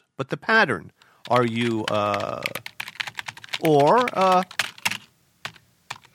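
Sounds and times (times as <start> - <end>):
speech: 0.2 - 2.7, 3.6 - 4.6
typing on a computer keyboard: 1.2 - 6.1.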